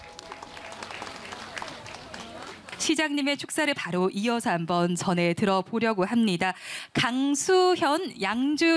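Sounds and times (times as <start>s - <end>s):
crowd applauding: 0.0s - 3.0s
speech: 2.9s - 8.7s.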